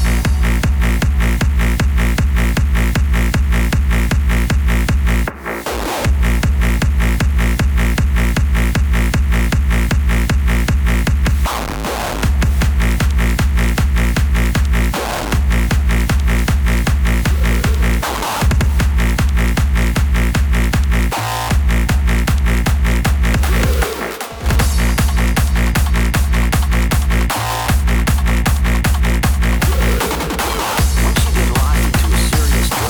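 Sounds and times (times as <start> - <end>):
heavy hardstyle bass drum beat: 0.0 - 32.8.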